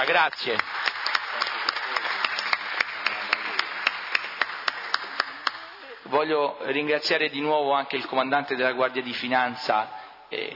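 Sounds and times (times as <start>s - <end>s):
speech: 0.0s - 1.5s, 6.1s - 10.5s
audience applause: 0.0s - 6.0s.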